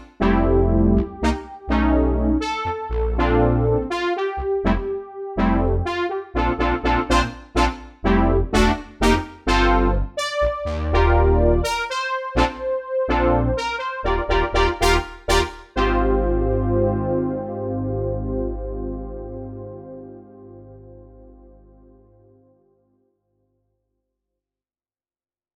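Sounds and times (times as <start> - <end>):
fat synth brass on a Dexibell: 0.0 - 22.6.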